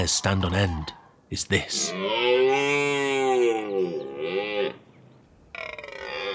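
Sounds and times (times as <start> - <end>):
speech: 0.0 - 2.7
red deer stags bellowing during the rut: 0.0 - 6.3.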